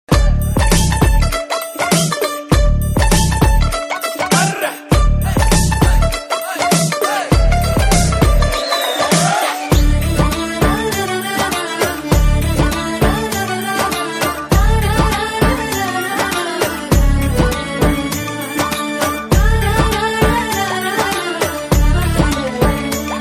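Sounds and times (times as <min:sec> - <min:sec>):
Telugu background music ringtone: 0:00.4 - 0:23.2.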